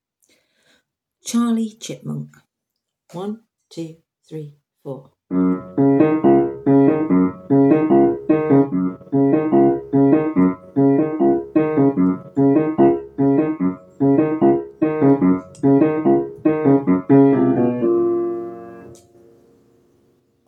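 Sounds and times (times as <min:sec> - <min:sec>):
backing track: 0:05.3 - 0:19.3.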